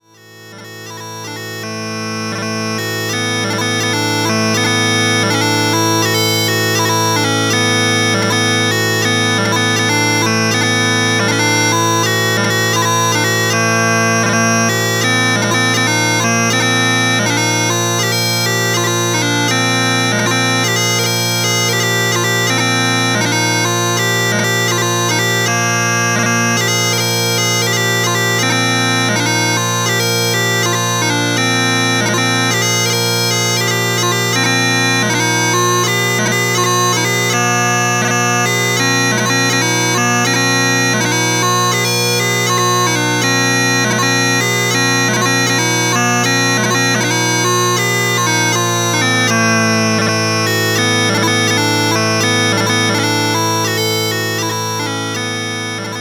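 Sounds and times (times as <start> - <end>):
bagpipes pitch changing: 0.0 - 55.9.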